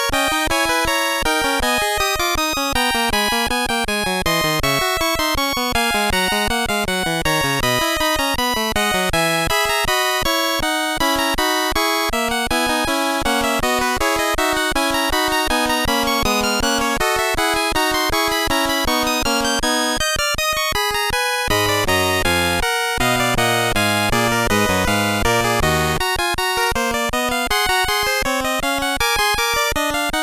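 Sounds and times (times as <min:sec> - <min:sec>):
fugue in C minor: 0:00.1 - 0:20.2, 0:21.5 - 0:30.1.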